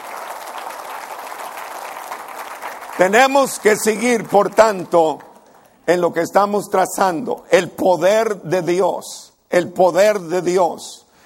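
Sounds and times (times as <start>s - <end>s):
applause: 0.0s - 6.4s
speech: 3.0s - 5.3s, 5.9s - 11.0s.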